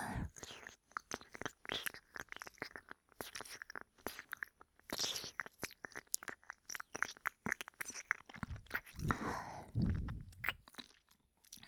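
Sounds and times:
ear licking: 0.1s - 11.6s
ejaculation sound: 5.9s - 10.9s.

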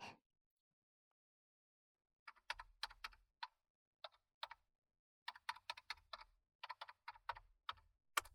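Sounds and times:
PC keyboard typing: 2.3s - 4.6s, 5.3s - 8.3s.

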